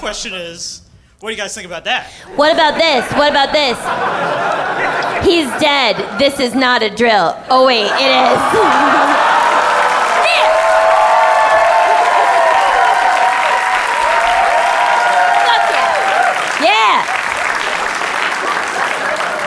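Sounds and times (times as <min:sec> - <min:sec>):
speech: 0:00.0 - 0:09.1
laughter: 0:02.4 - 0:06.6, 0:07.8 - 0:10.0, 0:17.7 - 0:19.4
audience applause: 0:08.2 - 0:19.4
whoops and shouted cheers: 0:08.3 - 0:17.2.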